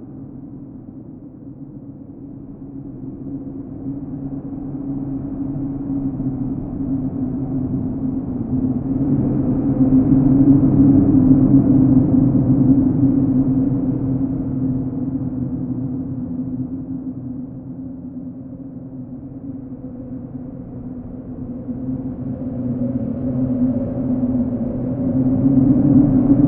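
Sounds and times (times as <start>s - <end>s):
wind in a cave: 0.0s - 26.4s.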